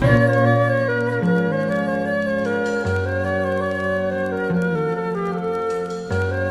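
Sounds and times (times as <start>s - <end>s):
jazz hip hop music loops: 0.0s - 3.6s
flute: 0.0s - 6.4s.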